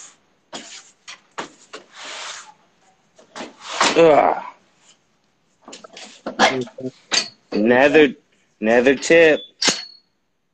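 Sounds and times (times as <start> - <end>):
large folding table being set up with legs locked: 0.5 - 2.5, 3.2 - 4.0
speech: 4.0 - 4.5, 6.5 - 9.5.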